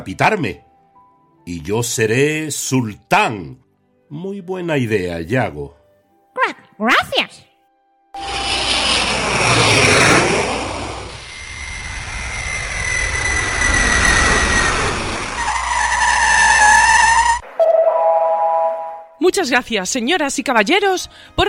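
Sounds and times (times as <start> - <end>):
speech: 0.0 - 0.6, 1.5 - 5.8, 6.5 - 7.5, 19.4 - 21.4
airplane landing sound effect in an animated comedy: 8.2 - 19.2
short ringing tone: 17.6 - 19.2.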